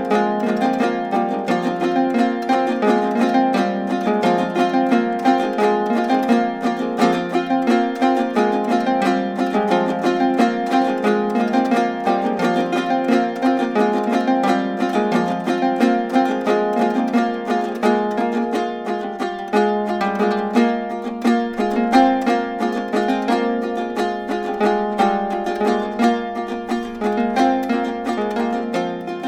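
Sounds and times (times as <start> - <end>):
An Dro dance tune on a lyre: 0.0 - 29.2.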